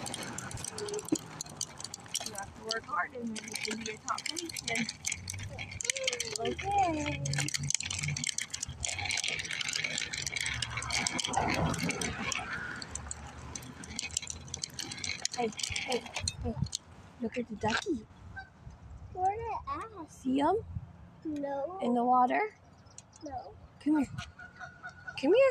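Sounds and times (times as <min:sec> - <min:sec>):
people talking: 0:00.0 - 0:01.2, 0:02.2 - 0:07.6, 0:15.3 - 0:18.0, 0:19.2 - 0:20.6, 0:21.3 - 0:22.5, 0:23.2 - 0:24.2, 0:25.2 - 0:25.4
cars driving by: 0:00.0 - 0:19.0
bike rattling over pavement: 0:00.0 - 0:20.6, 0:21.4 - 0:25.4.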